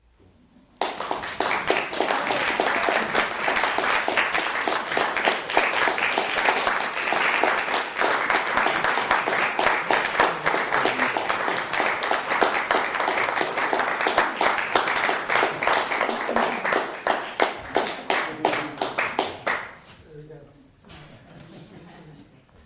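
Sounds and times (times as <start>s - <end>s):
polite applause: 0.8s - 19.8s.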